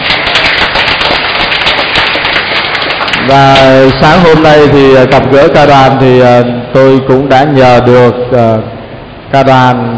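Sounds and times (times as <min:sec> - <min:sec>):
loud round of applause: 0:00.0 - 0:04.7
speech: 0:03.2 - 0:09.9.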